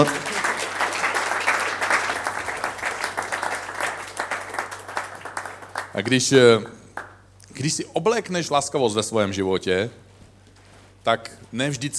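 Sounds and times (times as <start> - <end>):
speech: 0.0 - 0.2, 6.0 - 6.8, 7.6 - 10.0, 11.0 - 11.9
audience applause: 0.0 - 6.4.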